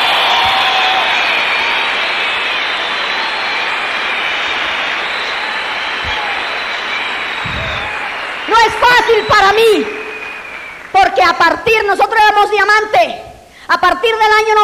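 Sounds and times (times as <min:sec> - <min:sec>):
audience applause: 0:00.0 - 0:11.5
speech: 0:08.6 - 0:10.0, 0:11.1 - 0:14.6.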